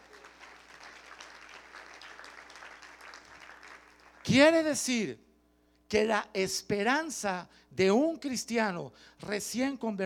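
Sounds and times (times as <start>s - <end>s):
audience applause: 0.0s - 4.2s
speech: 4.3s - 5.2s, 5.9s - 10.0s.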